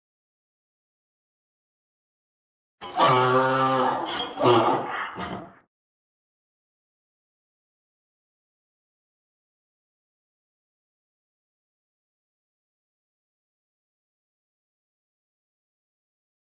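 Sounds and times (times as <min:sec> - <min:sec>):
mule sounds: 0:02.8 - 0:05.6.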